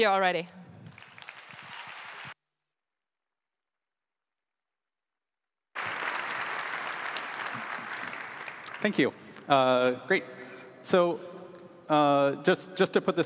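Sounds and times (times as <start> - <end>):
speech: 0.0 - 0.6, 8.8 - 11.3, 11.9 - 13.2
audience applause: 0.8 - 2.4, 5.8 - 9.5.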